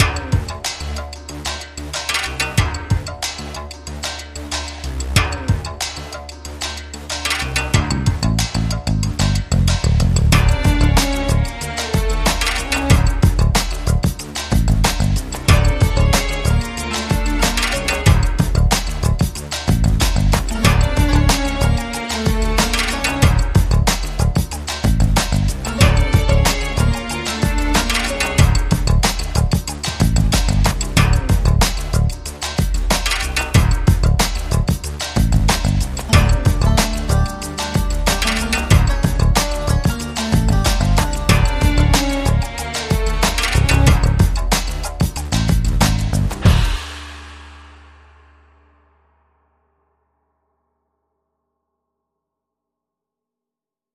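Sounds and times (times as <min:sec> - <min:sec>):
action music: 0:00.0 - 0:48.4.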